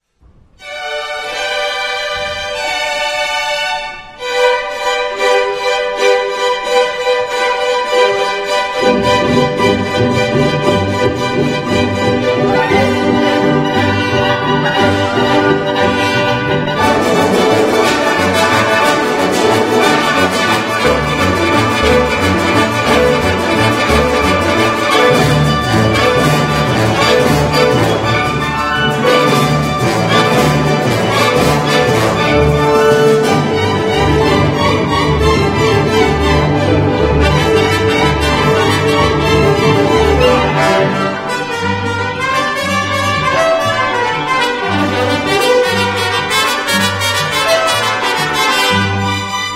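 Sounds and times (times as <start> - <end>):
mariachi music: 0.6 - 49.5.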